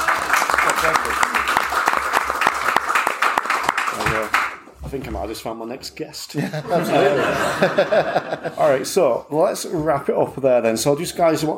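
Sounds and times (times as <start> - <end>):
audience applause: 0.0 - 4.6
speech: 4.9 - 11.5
laughter: 6.4 - 8.9.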